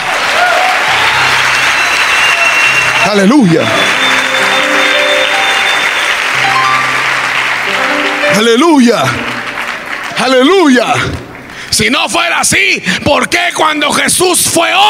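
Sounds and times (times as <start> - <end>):
audience applause: 0.0 - 11.8
speech: 3.1 - 3.9, 8.4 - 9.3, 10.2 - 11.2, 11.8 - 14.8.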